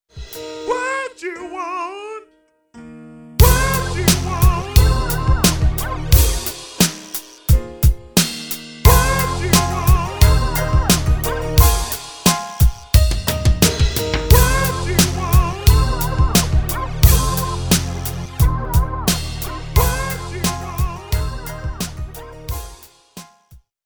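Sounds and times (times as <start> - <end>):
jazz music: 3.4 - 23.5.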